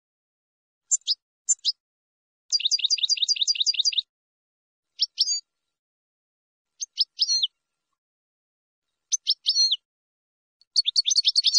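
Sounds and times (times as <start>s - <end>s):
finch chirping: 0.9s - 1.8s, 2.5s - 4.1s, 5.0s - 5.4s, 6.8s - 7.5s, 9.1s - 9.8s, 10.7s - 11.5s.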